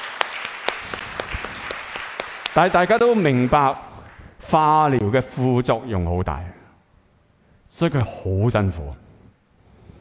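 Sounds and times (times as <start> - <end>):
church congregation applauding Jesus: 0.0 - 4.2
speech: 2.6 - 3.9, 4.5 - 6.6, 7.8 - 9.0.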